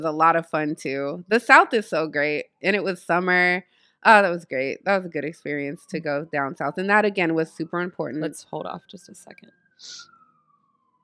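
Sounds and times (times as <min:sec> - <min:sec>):
speech: 0:00.0 - 0:10.1
emergency vehicle siren passing: 0:04.9 - 0:11.0.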